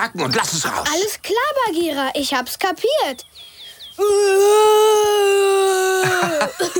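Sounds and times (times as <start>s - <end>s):
speech: 0.0s - 6.7s
child's feeble attempt at a roar: 4.0s - 6.4s
laughter: 5.8s - 6.7s.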